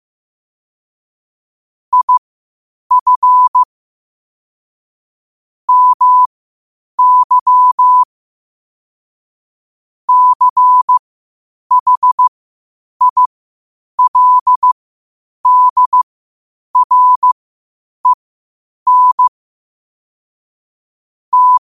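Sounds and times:
morse code at 5 wpm: 0:01.9 - 0:02.2, 0:02.9 - 0:03.7, 0:05.7 - 0:06.3, 0:07.0 - 0:08.1, 0:10.1 - 0:11.0, 0:11.7 - 0:12.3, 0:13.0 - 0:13.3, 0:14.0 - 0:14.8, 0:15.4 - 0:16.0, 0:16.8 - 0:17.4, 0:18.9 - 0:19.3, 0:21.3 - 0:21.6.

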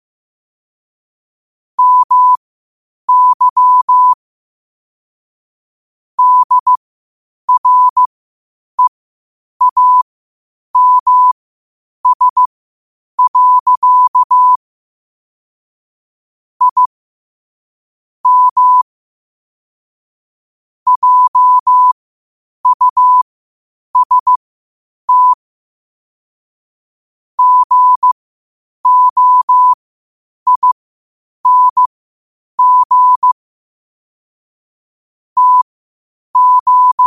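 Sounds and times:
morse code at 5 wpm: 0:01.8 - 0:02.4, 0:03.1 - 0:04.2, 0:06.2 - 0:06.8, 0:07.5 - 0:08.1, 0:09.6 - 0:10.0, 0:10.8 - 0:11.4, 0:12.0 - 0:12.5, 0:13.2 - 0:14.6, 0:16.6 - 0:16.9, 0:18.2 - 0:18.8, 0:20.9 - 0:22.0, 0:22.6 - 0:23.2, 0:24.0 - 0:24.4, 0:25.1 - 0:25.4, 0:27.4 - 0:28.2, 0:28.8 - 0:29.8, 0:30.5 - 0:30.8, 0:31.4 - 0:31.9, 0:32.6 - 0:33.4, 0:35.4 - 0:35.7, 0:36.4 - 0:37.0.

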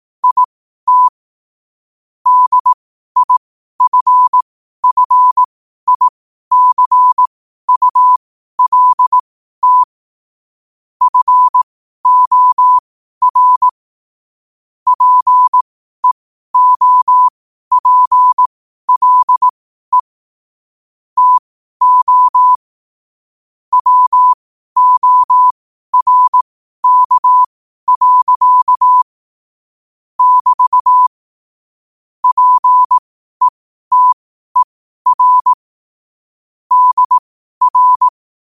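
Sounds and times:
morse code at 5 wpm: 0:00.2 - 0:01.1, 0:02.3 - 0:09.9, 0:11.0 - 0:13.8, 0:14.9 - 0:20.1, 0:21.2 - 0:22.7, 0:23.7 - 0:29.1, 0:30.2 - 0:31.2, 0:32.2 - 0:35.6, 0:36.7 - 0:38.4.

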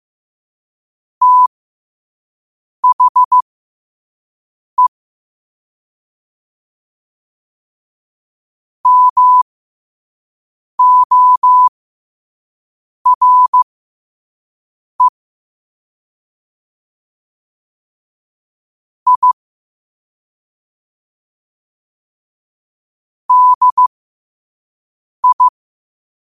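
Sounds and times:
morse code at 5 wpm: 0:01.2 - 0:01.5, 0:02.8 - 0:03.4, 0:08.9 - 0:09.4, 0:10.8 - 0:11.7, 0:13.1 - 0:13.6, 0:19.1 - 0:19.4, 0:23.3 - 0:23.9, 0:25.2 - 0:25.5.

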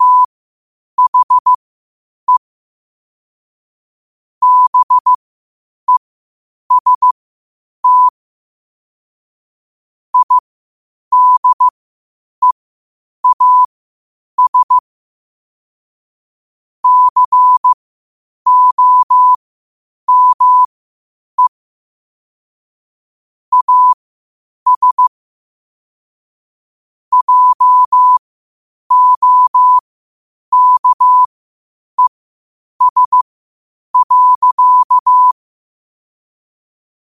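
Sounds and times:
morse code at 5 wpm: 0:00.0 - 0:00.3, 0:01.0 - 0:01.6, 0:04.4 - 0:05.2, 0:06.7 - 0:07.2, 0:07.8 - 0:08.1, 0:10.2 - 0:10.4, 0:11.1 - 0:11.7, 0:13.2 - 0:13.7, 0:14.4 - 0:14.8, 0:16.8 - 0:17.8, 0:18.5 - 0:19.4, 0:20.1 - 0:20.7, 0:23.5 - 0:24.0, 0:24.7 - 0:25.1, 0:27.1 - 0:28.2, 0:28.9 - 0:29.8, 0:30.5 - 0:31.3, 0:32.8 - 0:33.2, 0:34.0 - 0:35.4.

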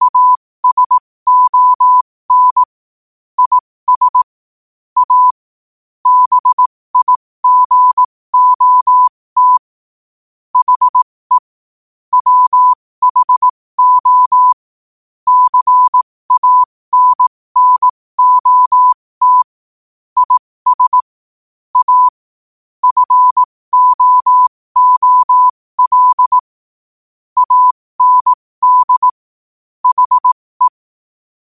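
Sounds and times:
morse code at 5 wpm: 0:00.0 - 0:02.7, 0:03.4 - 0:04.3, 0:05.0 - 0:05.4, 0:06.0 - 0:09.7, 0:10.6 - 0:11.4, 0:12.1 - 0:14.6, 0:15.3 - 0:19.5, 0:20.2 - 0:21.1, 0:21.8 - 0:22.2, 0:22.8 - 0:26.5, 0:27.4 - 0:29.2, 0:29.8 - 0:30.8.

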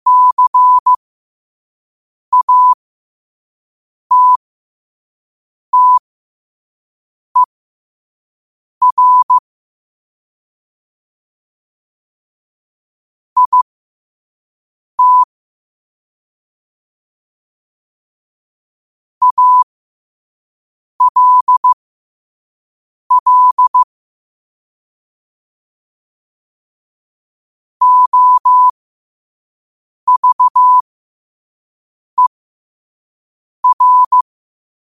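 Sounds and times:
morse code at 5 wpm: 0:00.1 - 0:01.0, 0:02.4 - 0:02.8, 0:04.1 - 0:04.4, 0:05.8 - 0:06.0, 0:08.8 - 0:09.4, 0:13.4 - 0:13.7, 0:15.0 - 0:15.3, 0:19.2 - 0:19.6, 0:21.0 - 0:21.8, 0:23.1 - 0:23.9, 0:27.8 - 0:28.7, 0:30.1 - 0:30.8, 0:33.6 - 0:34.2.

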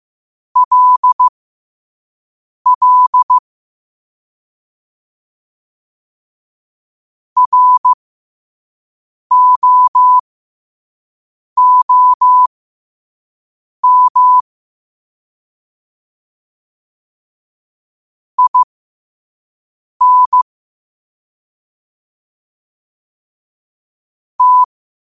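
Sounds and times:
morse code at 5 wpm: 0:00.6 - 0:01.3, 0:02.7 - 0:03.4, 0:07.4 - 0:08.0, 0:09.3 - 0:10.2, 0:11.6 - 0:12.5, 0:13.8 - 0:14.4, 0:18.4 - 0:18.7, 0:20.0 - 0:20.5, 0:24.4 - 0:24.7.

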